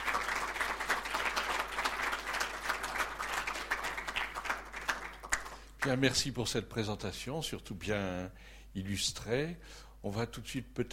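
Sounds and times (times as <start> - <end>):
audience applauding: 0.0 - 6.0
speech: 5.8 - 10.9.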